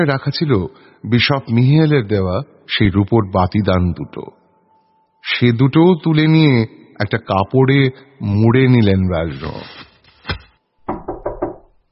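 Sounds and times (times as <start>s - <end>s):
speech: 0.0s - 4.4s, 5.2s - 9.8s
knuckles knocking on a door: 10.9s - 11.8s.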